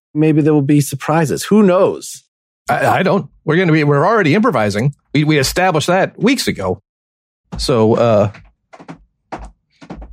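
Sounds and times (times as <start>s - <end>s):
speech: 0.2s - 6.8s, 7.5s - 9.0s
bedroom door rattling and thumping from a cat wanting out: 7.5s - 10.1s.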